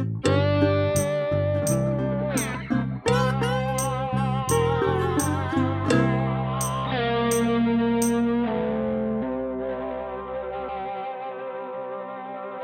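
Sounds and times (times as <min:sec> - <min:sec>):
backing track music: 0:00.0 - 0:12.5
drum kit playing along to a backing track: 0:01.0 - 0:02.7, 0:03.4 - 0:08.2.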